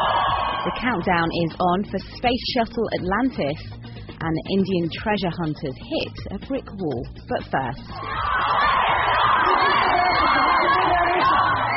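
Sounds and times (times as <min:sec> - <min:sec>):
crowd cheering Wimbledon tennis champion on open-top bus tour through Belgrade: 0:00.0 - 0:01.0, 0:08.0 - 0:11.7
speech: 0:00.6 - 0:11.6.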